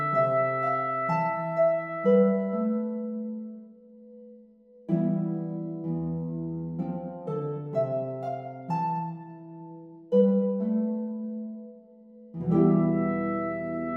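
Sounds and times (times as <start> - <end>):
trumpet: 0.0 - 3.1, 12.5 - 13.9
harp: 0.0 - 13.9.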